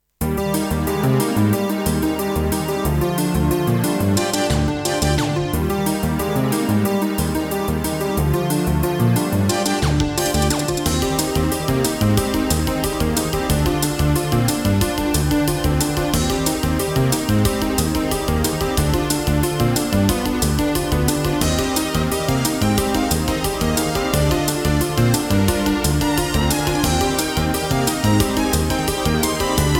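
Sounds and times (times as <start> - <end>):
AWE32 General MIDI synthesized music: 0.2 - 29.7.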